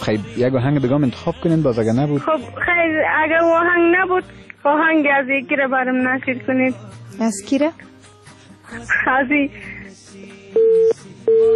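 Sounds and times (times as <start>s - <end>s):
speech: 0.0s - 7.9s, 8.7s - 11.5s
telephone line tone after a cut-off call: 10.6s - 11.5s.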